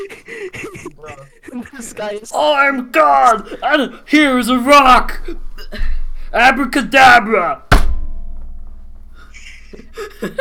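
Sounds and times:
laughter: 0.0s - 2.4s, 3.1s - 4.0s, 9.2s - 10.3s
speech: 0.0s - 7.7s, 10.0s - 10.3s
hand slamming on a desk: 7.7s - 8.1s.

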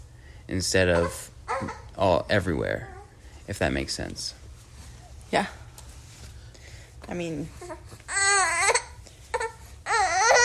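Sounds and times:
speech: 0.5s - 4.4s, 5.3s - 5.6s, 7.1s - 8.0s
baby girl fussing and crying from hunger: 0.9s - 2.0s, 7.6s - 10.4s.

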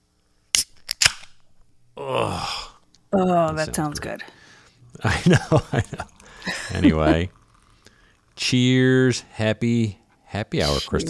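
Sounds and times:
beer can cracking open: 0.5s - 1.7s, 5.0s - 8.7s
speech: 2.0s - 4.4s, 5.0s - 7.4s, 8.4s - 11.0s
laughter: 5.0s - 7.3s.

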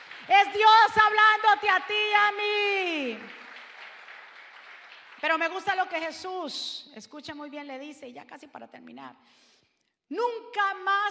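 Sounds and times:
audience applauding loudly: 0.0s - 5.8s
speech: 0.4s - 3.4s, 5.2s - 9.5s, 10.1s - 11.1s.

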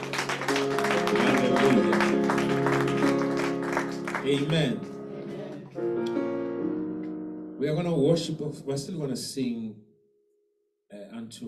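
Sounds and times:
audience clapping: 0.0s - 6.2s
speech: 4.3s - 4.9s, 7.6s - 9.9s, 11.1s - 11.4s.

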